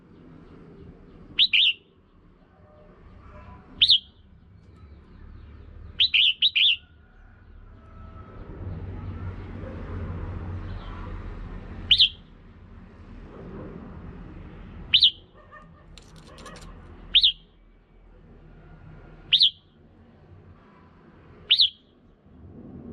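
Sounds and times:
red-whiskered bulbul calling: 0:01.4 - 0:01.8, 0:03.8 - 0:04.2, 0:06.0 - 0:06.9, 0:11.9 - 0:12.2, 0:14.9 - 0:17.5, 0:19.3 - 0:19.6, 0:21.5 - 0:21.8.

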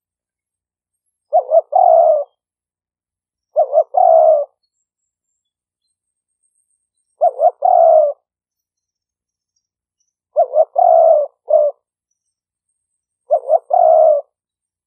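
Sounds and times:
spotted dove cooing: 0:01.3 - 0:02.4, 0:03.5 - 0:04.6, 0:07.2 - 0:08.3, 0:10.4 - 0:11.8, 0:13.3 - 0:14.4.

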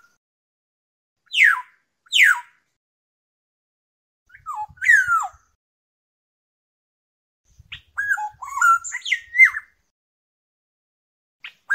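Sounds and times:
black-naped oriole fluting whistles: 0:01.3 - 0:02.5, 0:04.3 - 0:05.4, 0:07.7 - 0:09.7.

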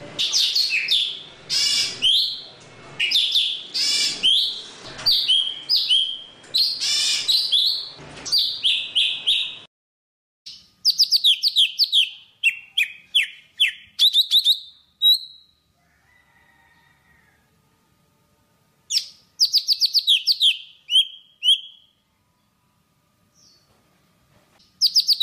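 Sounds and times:
Java sparrow singing: 0:00.2 - 0:02.4, 0:03.0 - 0:09.6, 0:10.5 - 0:15.5, 0:18.9 - 0:21.9, 0:24.8 - 0:25.2.

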